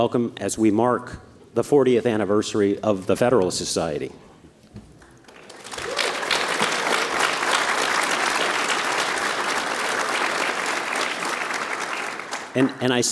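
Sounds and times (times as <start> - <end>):
speech: 0.0 - 4.3, 12.6 - 13.0
audience applause at the Federalist Society's 40th anniversary event: 5.0 - 12.7.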